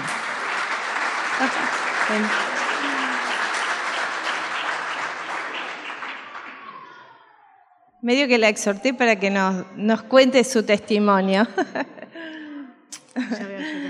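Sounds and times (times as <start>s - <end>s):
laughter: 0.0s - 6.1s, 11.4s - 13.8s
audience clapping: 0.0s - 7.6s
speech: 1.4s - 3.0s, 8.0s - 12.3s, 13.2s - 13.8s
faint murmuring voices: 1.4s - 5.8s.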